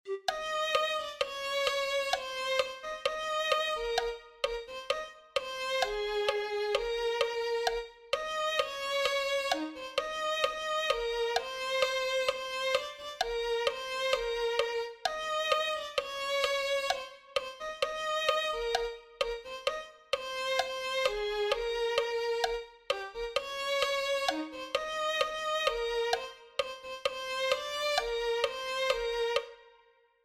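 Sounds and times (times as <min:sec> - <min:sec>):
violin: 0:00.0 - 0:30.0.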